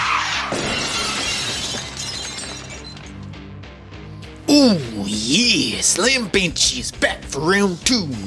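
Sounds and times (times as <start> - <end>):
row of windows shattering: 0.1 - 3.3
speech: 4.7 - 8.2.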